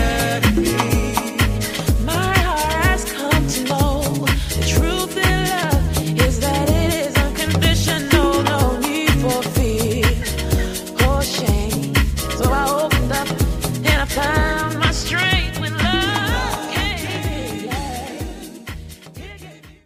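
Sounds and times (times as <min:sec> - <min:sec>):
vocals: 0:00.0 - 0:19.8.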